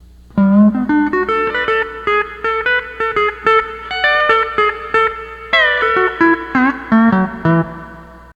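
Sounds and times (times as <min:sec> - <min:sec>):
12-string lap guitar playing: 0:00.0 - 0:08.3.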